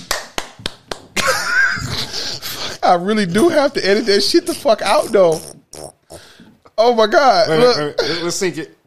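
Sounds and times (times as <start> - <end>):
sharp hand claps: 0.0 - 1.3
speech: 2.9 - 6.0, 6.8 - 8.8.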